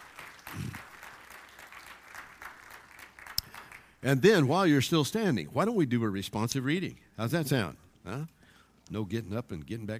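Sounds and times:
audience applause: 0:00.0 - 0:04.0
speech: 0:04.0 - 0:09.9.

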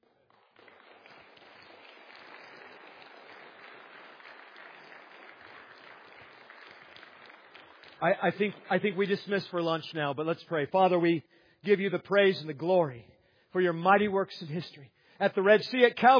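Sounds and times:
audience applause: 0:00.1 - 0:09.6
speech: 0:08.0 - 0:16.1.

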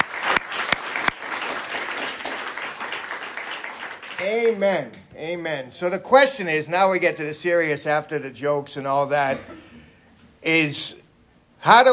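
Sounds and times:
audience applause: 0:00.0 - 0:04.6
speech: 0:04.2 - 0:09.7, 0:10.4 - 0:11.0, 0:11.6 - 0:11.9.

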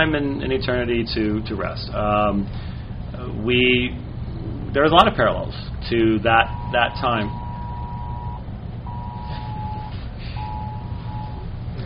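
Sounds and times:
speech: 0:00.0 - 0:04.1, 0:04.7 - 0:07.4
emergency broadcast system test tone: 0:06.4 - 0:11.6.

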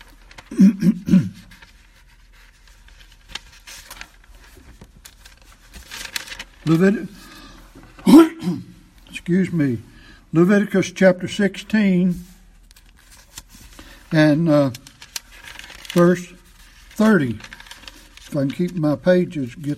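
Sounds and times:
speech: 0:00.5 - 0:01.2, 0:06.7 - 0:07.2, 0:08.0 - 0:08.7, 0:09.3 - 0:12.3, 0:14.1 - 0:14.8, 0:16.0 - 0:16.4, 0:17.0 - 0:17.5, 0:18.3 - 0:19.7
person clearing throat with something stuck in it: 0:00.5 - 0:01.5, 0:08.0 - 0:08.8.

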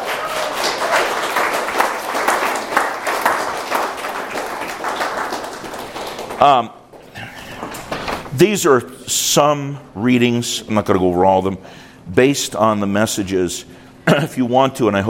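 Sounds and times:
audience applause: 0:00.0 - 0:06.7
speech: 0:06.4 - 0:06.8, 0:08.4 - 0:15.0.

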